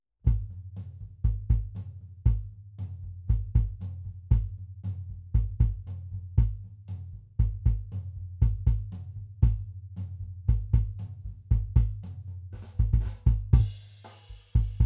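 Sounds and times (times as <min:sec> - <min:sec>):
kick drum: 0:00.3 - 0:00.6, 0:01.2 - 0:02.6, 0:03.3 - 0:04.6, 0:05.3 - 0:06.7, 0:07.4 - 0:09.7, 0:10.4 - 0:12.0, 0:12.7 - 0:13.8, 0:14.6 - 0:14.8.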